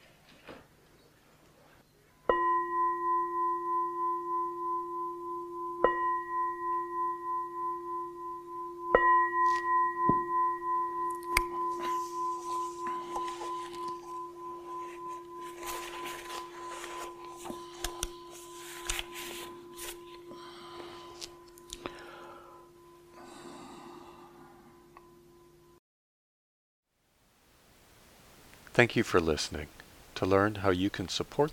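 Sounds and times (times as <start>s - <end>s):
meditation bell ringing: 2.2s - 25.8s
speech: 28.8s - 31.5s.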